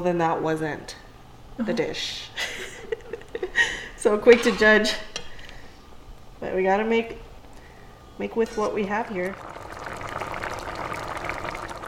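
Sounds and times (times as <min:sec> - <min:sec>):
speech: 0:00.0 - 0:01.0, 0:01.6 - 0:02.7, 0:03.6 - 0:05.1, 0:06.4 - 0:07.3, 0:08.2 - 0:09.6
rice boiling in a pot in Alaska: 0:08.2 - 0:11.8.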